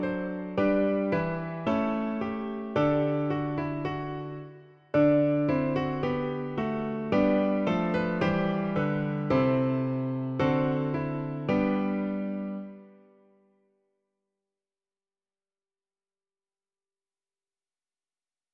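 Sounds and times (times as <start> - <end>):
piano: 0.0 - 13.6.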